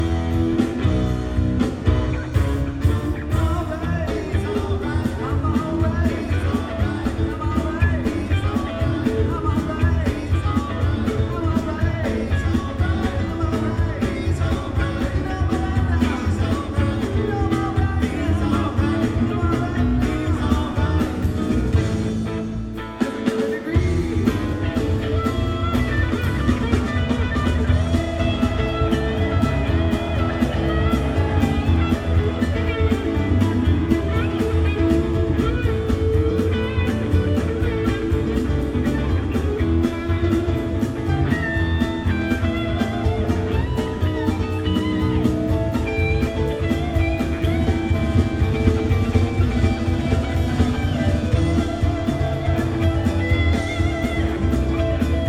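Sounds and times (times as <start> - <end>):
blues music: 0.0 - 55.2.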